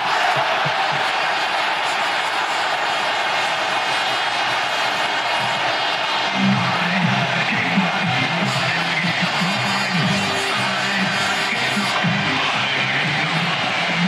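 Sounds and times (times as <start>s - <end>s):
stadium crowd cheering after a goal: 0.0s - 14.0s.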